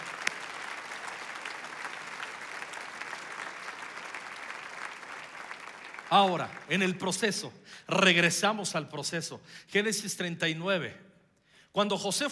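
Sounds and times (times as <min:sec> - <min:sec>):
audience applause: 0:00.0 - 0:06.8
speech: 0:06.1 - 0:11.1, 0:11.7 - 0:12.3.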